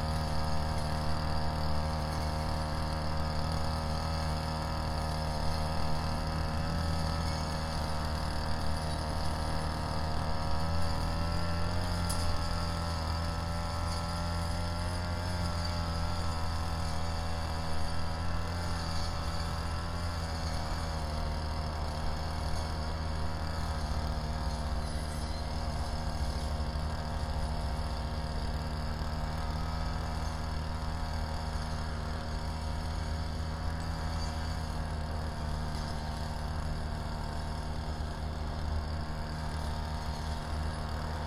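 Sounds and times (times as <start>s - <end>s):
grass cutter engine droning while mowing: 0.0s - 41.2s.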